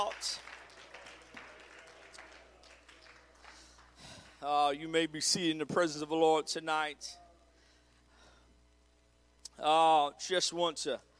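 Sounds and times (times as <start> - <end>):
crowd clapping their hands: 0.0 - 4.7
speech: 4.4 - 7.2, 9.6 - 11.1.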